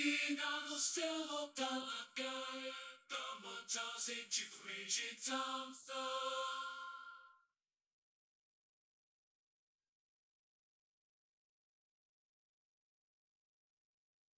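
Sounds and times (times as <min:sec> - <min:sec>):
person singing: 0:00.0 - 0:07.3.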